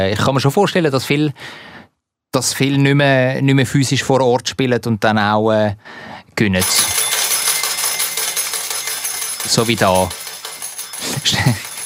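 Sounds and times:
speech: 0.0s - 1.7s, 2.3s - 7.0s, 9.4s - 10.2s, 11.1s - 11.7s
coins jingling out of slot machine: 6.6s - 11.8s
laughter: 11.0s - 11.8s.

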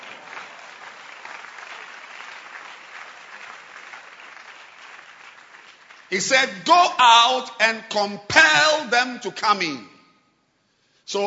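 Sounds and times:
audience hand clapping: 0.0s - 6.6s
speech: 6.1s - 9.9s, 11.1s - 11.2s.

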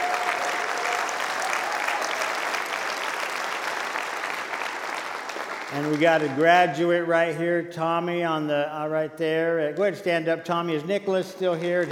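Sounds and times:
audience applause: 0.0s - 6.7s
speech: 5.7s - 11.9s.

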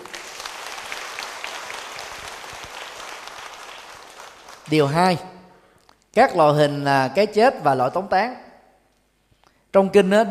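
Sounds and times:
crowd applause: 0.0s - 4.8s
speech: 4.7s - 5.3s, 6.1s - 8.4s, 9.7s - 10.2s.

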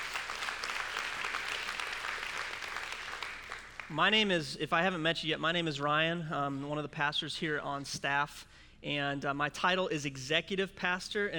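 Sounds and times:
audience applause: 0.0s - 3.9s
speech: 3.9s - 11.3s.

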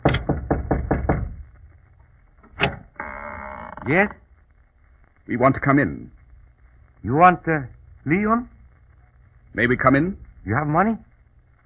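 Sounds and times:
knocking on a door: 0.0s - 1.4s
speech: 3.8s - 4.2s, 5.3s - 6.2s, 7.0s - 8.5s, 9.5s - 11.1s.

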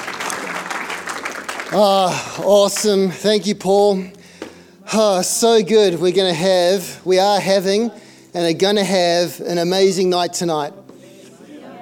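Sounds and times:
audience applause welcoming a speaker at a Sunday night church service: 0.0s - 3.2s
speech: 1.7s - 4.2s, 4.9s - 10.8s.

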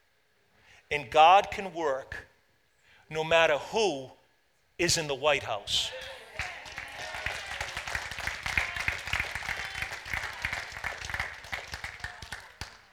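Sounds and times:
speech: 0.9s - 2.3s, 3.1s - 4.2s, 4.8s - 6.2s
audience applause: 5.8s - 12.9s.

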